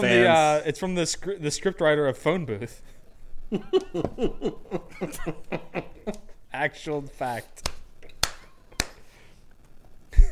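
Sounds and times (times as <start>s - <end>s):
speech: 0.0s - 7.8s
laughter: 3.5s - 6.4s
hand slapping knee while laughing: 7.6s - 9.1s.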